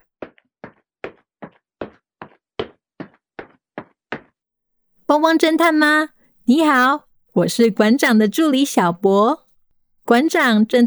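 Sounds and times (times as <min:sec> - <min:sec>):
hurried footsteps: 0:00.2 - 0:04.3
speech: 0:05.1 - 0:09.4, 0:10.1 - 0:10.8.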